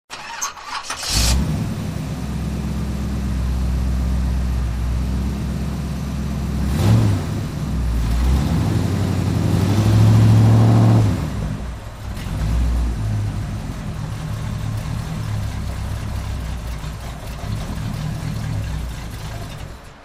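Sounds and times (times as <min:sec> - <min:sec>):
car: 0:00.1 - 0:20.0.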